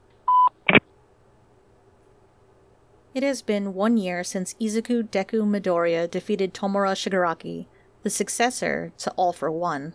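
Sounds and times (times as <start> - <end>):
voicemail beep: 0.3 - 0.6
speech: 3.1 - 9.9.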